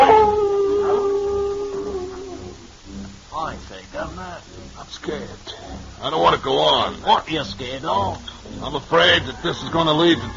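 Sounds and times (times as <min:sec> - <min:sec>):
hounds baying in a long howl: 0:00.0 - 0:02.8
low wash of noise: 0:00.0 - 0:10.3
speech: 0:05.3 - 0:10.3.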